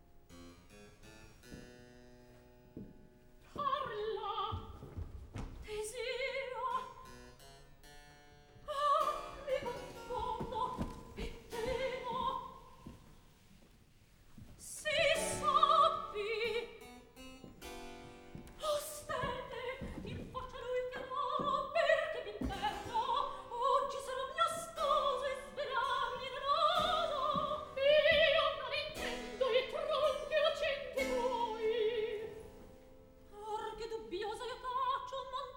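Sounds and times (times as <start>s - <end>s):
opera recitative: 3.4s - 5.0s, 5.6s - 7.1s, 8.6s - 13.1s, 14.6s - 17.2s, 18.4s - 32.7s, 33.3s - 35.5s.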